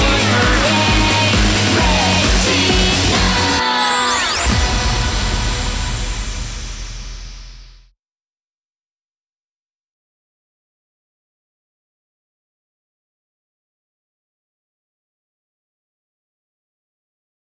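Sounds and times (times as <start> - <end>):
background music: 0.0 - 6.8.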